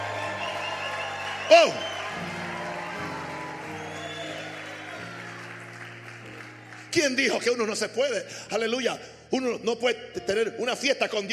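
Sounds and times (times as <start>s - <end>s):
audience applause: 0.0s - 7.3s
sustained low keyboard chords: 0.0s - 11.3s
speech: 1.5s - 2.3s, 7.0s - 11.3s.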